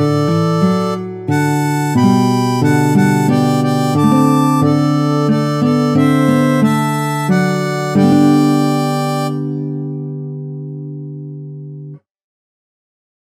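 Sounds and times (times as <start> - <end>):
harmonica: 0.0 - 10.3.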